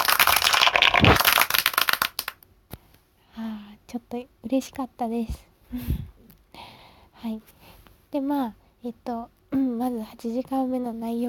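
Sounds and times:
hand clapping applause: 0.0s - 2.4s
speech: 3.9s - 6.1s, 7.2s - 11.2s.

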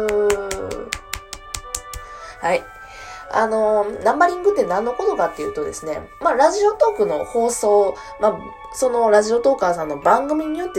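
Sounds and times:
sharp hand claps: 0.0s - 2.3s
speech: 2.4s - 10.7s.

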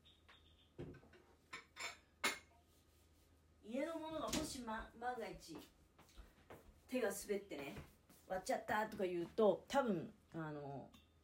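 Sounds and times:
low steady hum: 0.0s - 11.2s
ceramic dishes being handled and set down: 0.9s - 2.5s
speech: 3.7s - 5.8s, 6.9s - 11.0s.

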